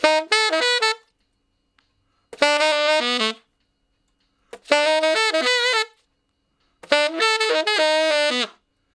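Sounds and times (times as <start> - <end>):
tenor saxophone playing straight R&B: 0.0 - 1.3, 2.4 - 3.6, 4.5 - 6.1, 6.8 - 8.9.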